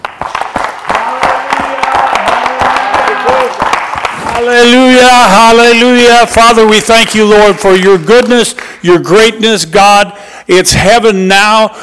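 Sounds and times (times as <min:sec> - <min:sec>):
audience clapping hands: 0:00.0 - 0:06.9
speech: 0:04.4 - 0:11.8.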